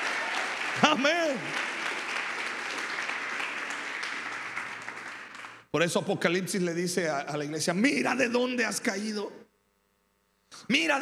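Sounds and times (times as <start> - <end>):
audience applauding: 0.0 - 5.7
speech: 0.8 - 1.6, 5.7 - 9.4, 10.7 - 11.0.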